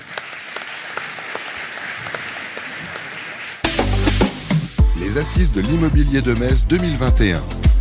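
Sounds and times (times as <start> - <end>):
audience applause: 0.0 - 3.7
speech: 5.1 - 7.7.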